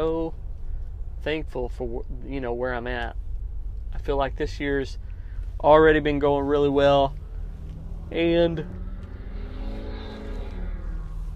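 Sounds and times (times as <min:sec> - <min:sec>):
speech: 0:01.2 - 0:03.2, 0:03.9 - 0:07.2, 0:08.1 - 0:08.8
loud truck driving past on a road: 0:07.0 - 0:11.3.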